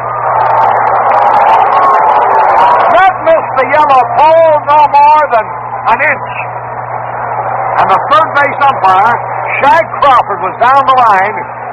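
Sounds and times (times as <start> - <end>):
baseball stadium crowd reacting: 0.0 - 11.7
speech: 5.3 - 6.6, 8.0 - 11.6.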